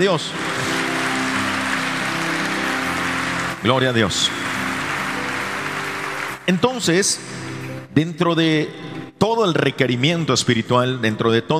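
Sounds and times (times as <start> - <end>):
speech: 0.0 - 0.6, 3.6 - 4.4, 6.5 - 7.4, 8.0 - 11.5
audience applause: 0.0 - 7.7.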